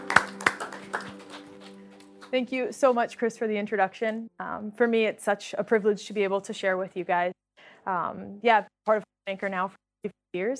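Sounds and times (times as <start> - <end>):
audience applause: 0.0 - 2.4
speech: 2.3 - 10.5.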